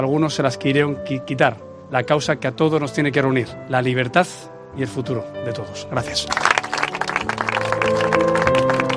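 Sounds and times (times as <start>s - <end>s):
speech: 0.0s - 6.6s, 7.8s - 8.4s
applause after Pablo Casado's speech at a memorial event in Rentería, Gipuzkoa: 6.3s - 8.9s.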